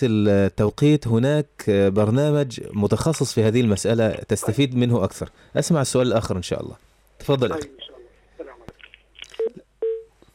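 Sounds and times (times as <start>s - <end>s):
speech: 0.0s - 7.9s
phone line tones as a call ends: 9.4s - 10.1s.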